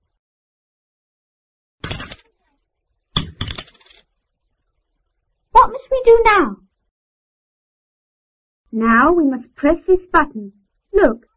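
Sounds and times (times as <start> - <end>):
coins put into ticket machine slot: 1.8 - 2.3, 3.2 - 4.1
speech: 6.0 - 6.6, 8.7 - 11.3.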